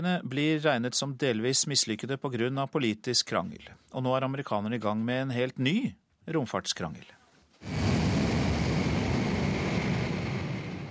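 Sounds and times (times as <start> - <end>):
speech: 0.0 - 7.9
jumbo jet taking off: 7.6 - 10.8.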